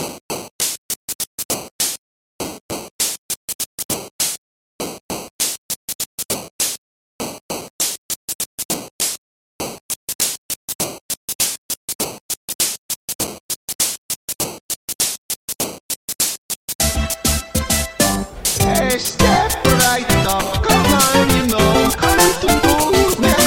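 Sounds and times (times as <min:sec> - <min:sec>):
8-bit noise: 0:16.8 - 0:23.4.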